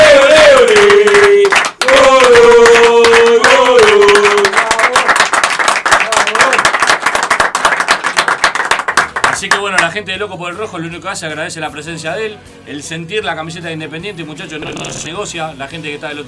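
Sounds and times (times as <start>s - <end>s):
audience applause: 0.2s - 9.5s
speech: 10.2s - 16.2s.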